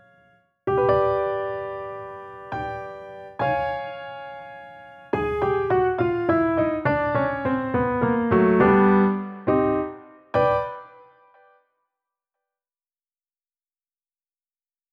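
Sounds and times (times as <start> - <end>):
waltz music: 0.0 - 11.3.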